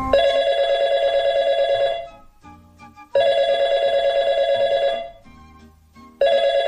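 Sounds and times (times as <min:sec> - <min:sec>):
telephone bell ringing: 0:00.1 - 0:02.2, 0:03.1 - 0:05.2, 0:06.2 - 0:06.6.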